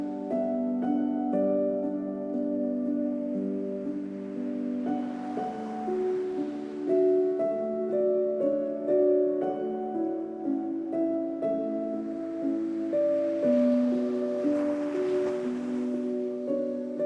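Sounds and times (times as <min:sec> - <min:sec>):
piano music: 0:00.0 - 0:17.0.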